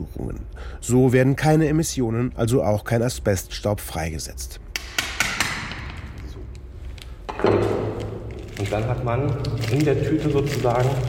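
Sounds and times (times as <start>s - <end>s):
speech: 0.3s - 4.6s, 8.6s - 11.0s
chisel hammered through a layer of material: 4.7s - 6.2s.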